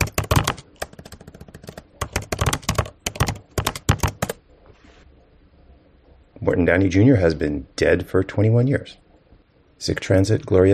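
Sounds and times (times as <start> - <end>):
typing on a computer keyboard: 0.0 - 4.4
speech: 6.5 - 9.0, 9.8 - 10.7.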